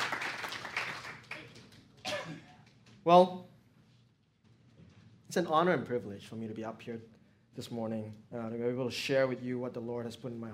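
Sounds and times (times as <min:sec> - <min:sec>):
audience applause at a morning gathering: 0:00.0 - 0:01.8
speech: 0:03.0 - 0:03.5, 0:05.3 - 0:10.5.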